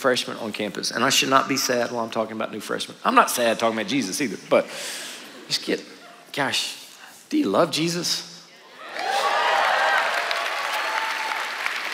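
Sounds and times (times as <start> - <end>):
speech: 0.0 - 8.3
audience clapping: 8.8 - 11.9.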